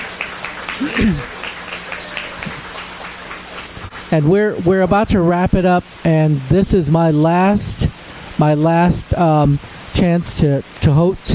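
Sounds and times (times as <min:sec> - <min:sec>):
audience applause: 0:00.0 - 0:04.1
speech: 0:00.8 - 0:01.4, 0:04.1 - 0:07.8, 0:08.4 - 0:11.3.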